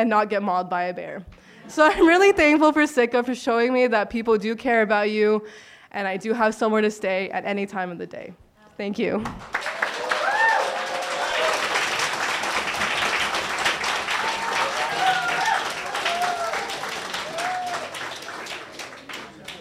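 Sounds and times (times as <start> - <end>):
speech: 0.0 - 9.7
audience applause after a story: 9.4 - 19.5.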